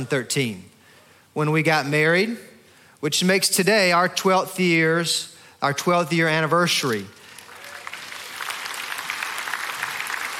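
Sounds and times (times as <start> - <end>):
speech: 0.0 - 0.7, 1.4 - 7.2
audience applause: 7.4 - 10.3.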